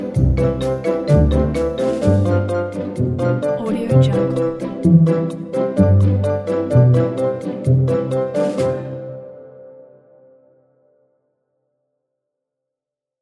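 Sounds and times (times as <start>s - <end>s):
background music for children's game app: 0.0s - 9.0s.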